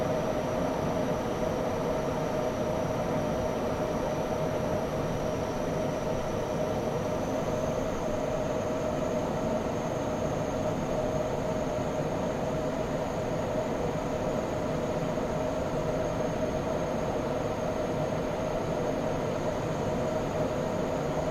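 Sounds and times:
fighter jet interior in flight: 0:00.0 - 0:21.3.

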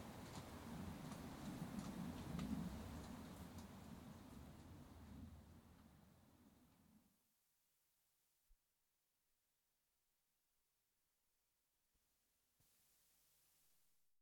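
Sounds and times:
horse walking on rough track: 0:00.0 - 0:04.7.

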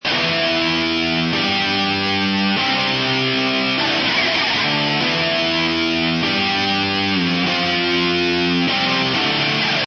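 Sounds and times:
electric guitar chords loop in E minor: 0:00.0 - 0:09.8.

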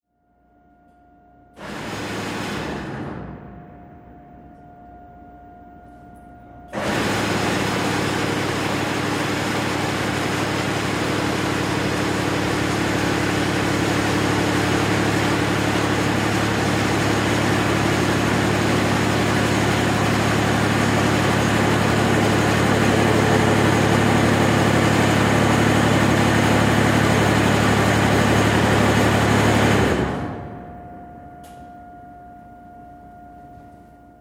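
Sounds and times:
oil pipeline service vessel compressor starting, running and stopping: 0:01.6 - 0:03.6, 0:06.7 - 0:31.7.

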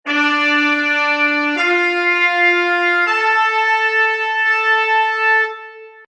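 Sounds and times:
orchestral trumpets in D minor: 0:00.0 - 0:06.0.

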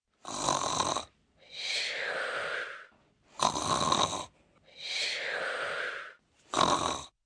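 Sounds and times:
child snoring and snorting: 0:00.2 - 0:07.2.

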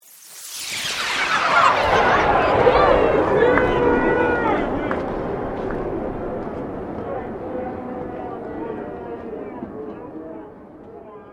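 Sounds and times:
slow sweep: 0:00.0 - 0:10.8.

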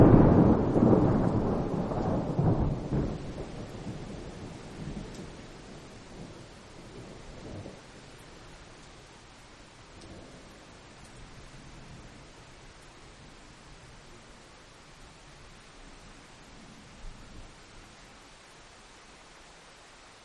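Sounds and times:
thunder: 0:00.0 - 0:07.8
rain: 0:00.0 - 0:20.2.

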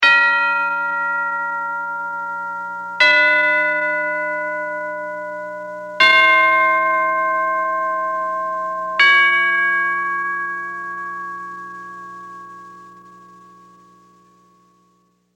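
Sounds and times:
tubular bell ascending: 0:00.0 - 0:13.8.

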